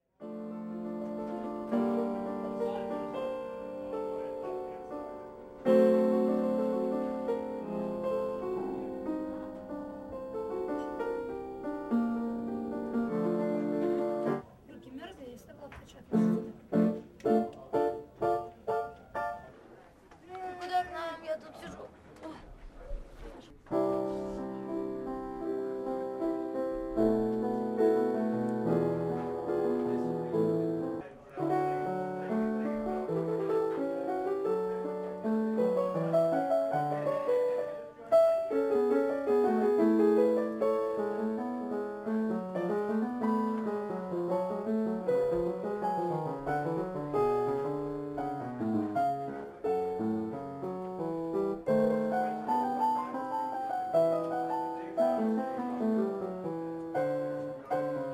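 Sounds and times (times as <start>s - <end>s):
piano: 0.0s - 14.8s, 15.9s - 19.8s, 23.4s - 58.1s.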